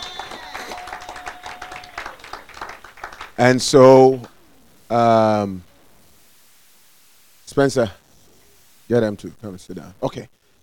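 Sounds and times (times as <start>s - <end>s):
crowd clapping: 0.0s - 4.4s
speech: 3.4s - 4.3s, 4.9s - 5.7s, 7.5s - 8.0s, 8.9s - 10.4s.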